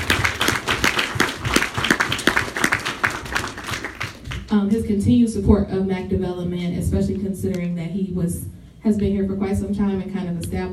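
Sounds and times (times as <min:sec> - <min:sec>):
audience applause: 0:00.0 - 0:04.5
speech: 0:04.5 - 0:10.7.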